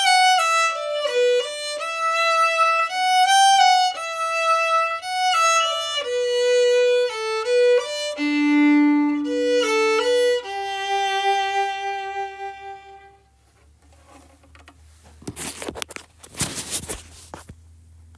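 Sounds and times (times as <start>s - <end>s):
fiddle: 0.0s - 13.6s.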